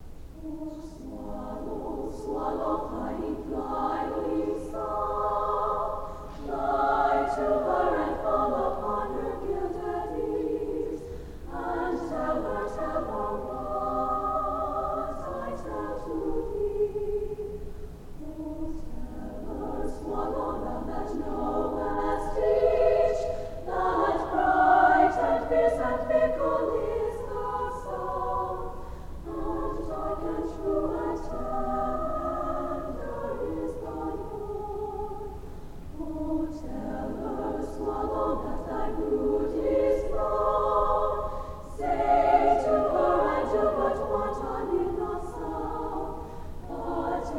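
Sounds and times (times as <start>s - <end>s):
chorus singing: 0.3s - 47.3s.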